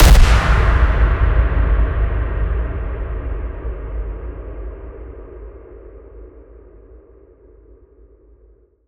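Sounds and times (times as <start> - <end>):
sudden impact: 0.0 - 5.6.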